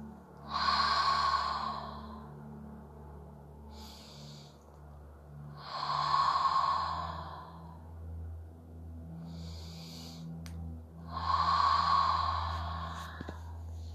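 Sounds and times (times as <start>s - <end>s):
deep breath during a guided healing meditation: 0.4s - 2.6s, 3.6s - 4.8s, 5.4s - 8.2s, 9.0s - 13.9s.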